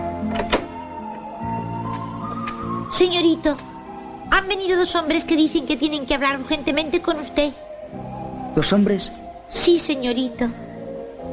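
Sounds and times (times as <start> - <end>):
bedroom door hinges creaking: 0.2 - 1.0
bedroom door latch click: 0.3 - 0.8
speech: 2.9 - 3.7, 4.3 - 7.6, 8.6 - 10.6.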